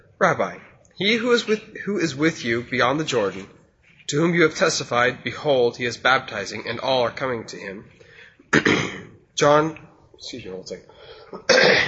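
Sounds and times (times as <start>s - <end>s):
speech: 0.2s - 11.8s
person clearing throat with honeycomb stuck in the throat: 8.5s - 9.2s, 11.3s - 11.8s.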